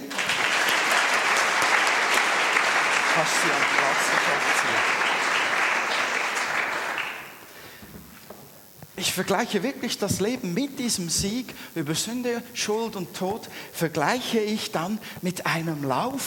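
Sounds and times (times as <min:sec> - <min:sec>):
applause: 0:00.0 - 0:07.5
speech: 0:03.2 - 0:05.1, 0:09.1 - 0:16.2.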